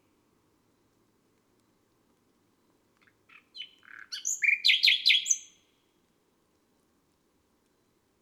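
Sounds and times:
nightingale singing on a May night: 0:03.3 - 0:05.6.

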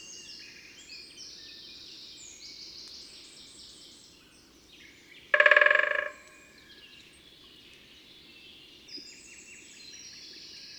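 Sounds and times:
great spotted woodpecker drumming: 0:05.4 - 0:06.4.

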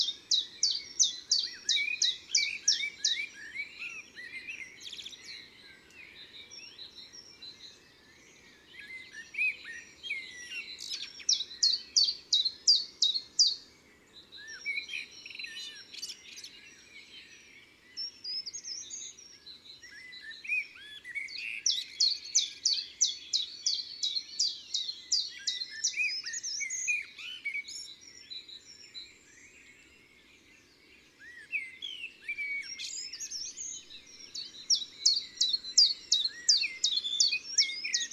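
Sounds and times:
common chiffchaff singing in woods and forests: 0:00.0 - 0:38.1.

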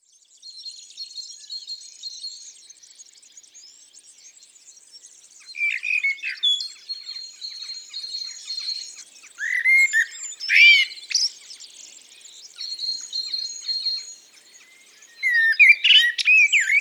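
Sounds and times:
common blackbird singing: 0:05.4 - 0:16.7.

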